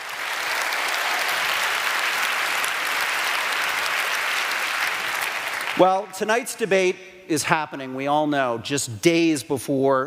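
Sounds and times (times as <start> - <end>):
audience applause: 0.0 - 6.2
speech: 5.8 - 10.0.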